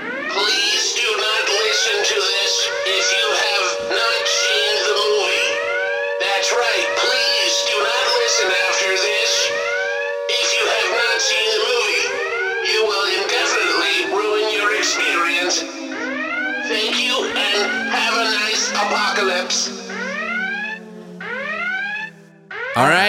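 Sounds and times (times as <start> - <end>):
alarm siren sound effect: 0.0 - 23.0.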